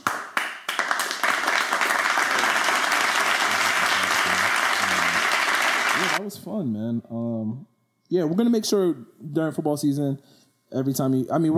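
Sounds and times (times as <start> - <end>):
people clapping: 0.0 - 6.2
speech: 6.1 - 11.5.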